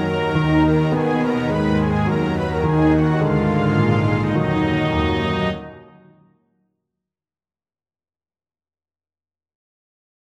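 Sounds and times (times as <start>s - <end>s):
old French melody: 0.0s - 6.2s.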